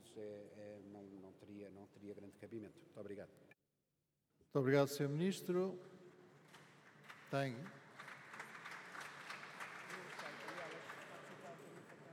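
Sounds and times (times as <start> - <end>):
speech: 0.2 - 3.6, 4.5 - 6.0, 7.3 - 7.8
applause: 6.3 - 12.1.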